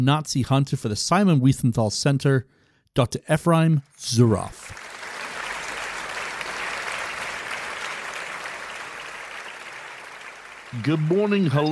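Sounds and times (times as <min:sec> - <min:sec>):
speech: 0:00.0 - 0:04.8, 0:10.7 - 0:11.7
studio audience applauding to welcome a talk show guest: 0:04.6 - 0:11.7.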